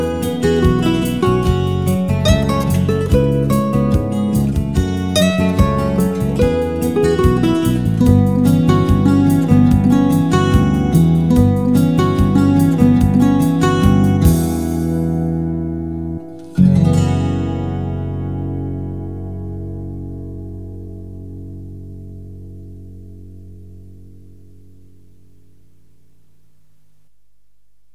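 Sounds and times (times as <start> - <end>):
drums: 0.0 - 15.5
bass: 0.0 - 27.9.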